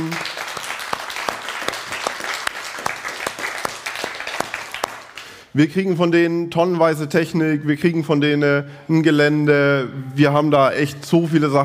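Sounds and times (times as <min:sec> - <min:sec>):
crowd applause: 0:00.0 - 0:05.4
speech: 0:05.6 - 0:11.6.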